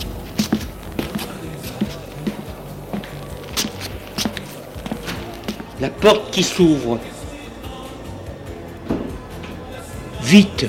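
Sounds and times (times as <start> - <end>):
footsteps: 0.0 - 6.6
speech: 5.8 - 7.1, 10.3 - 10.6.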